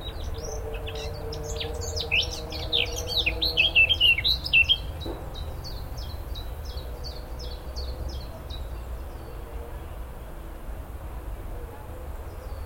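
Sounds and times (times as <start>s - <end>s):
Eurasian blackcap song: 0.0s - 9.4s.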